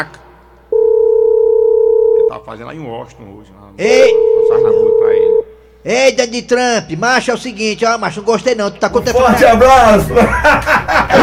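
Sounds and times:
speech: 0.0 - 0.2, 2.5 - 4.8, 5.8 - 11.2
telephone dial tone: 0.7 - 2.3, 4.1 - 5.5
laughter: 9.8 - 11.2.

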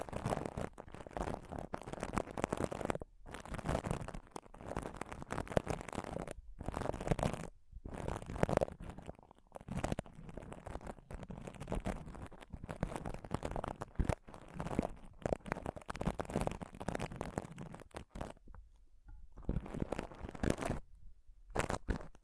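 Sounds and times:
scratching and touching on a microphone: 0.0 - 18.8, 19.4 - 20.9, 21.5 - 22.2.

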